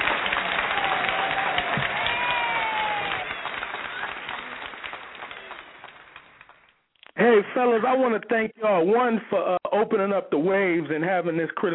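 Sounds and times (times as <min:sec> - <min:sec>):
applause: 0:00.0 - 0:06.8
speech: 0:07.4 - 0:11.7.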